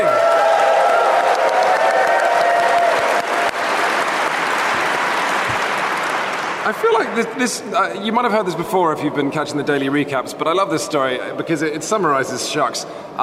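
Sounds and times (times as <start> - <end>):
live audience applause: 0.0 - 7.4
speech: 6.7 - 13.2.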